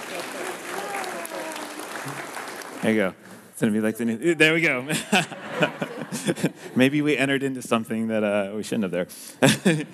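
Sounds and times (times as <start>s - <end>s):
audience applause: 0.0s - 3.3s
speech: 2.0s - 9.9s
laughter: 4.5s - 7.1s, 9.4s - 9.9s.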